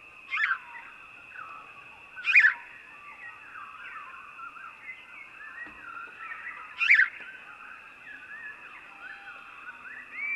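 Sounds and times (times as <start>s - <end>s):
house sparrow uttering sharp emphatic chirps: 2.2s - 2.6s, 6.3s - 7.2s.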